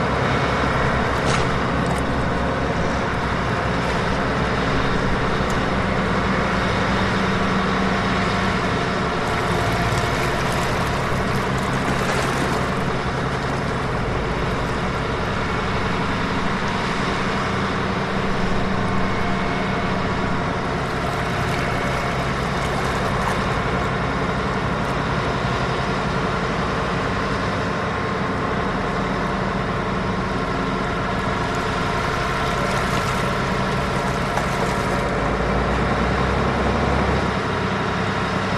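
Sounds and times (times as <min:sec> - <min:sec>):
waves lapping on rocks: 0:00.0 - 0:25.2, 0:30.9 - 0:36.1
boat dredger operating in a harbor: 0:00.0 - 0:38.5.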